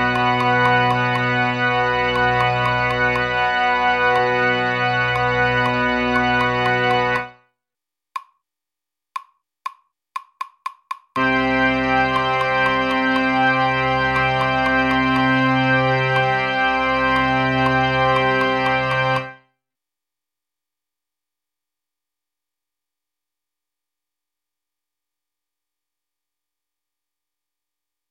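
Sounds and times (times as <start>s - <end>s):
tuba playing notes in G: 0.0s - 7.4s, 11.2s - 19.4s.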